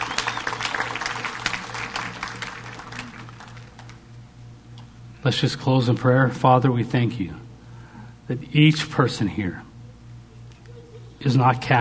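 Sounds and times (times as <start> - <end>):
audience applause: 0.0 - 4.0
low hum: 0.0 - 11.7
speech: 5.2 - 7.4, 8.3 - 9.6, 11.2 - 11.7.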